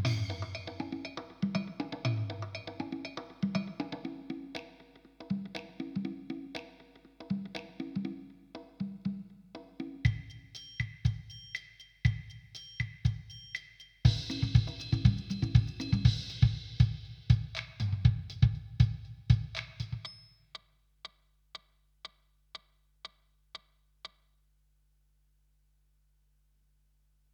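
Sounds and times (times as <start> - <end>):
drum patterns: 0.0 - 20.7.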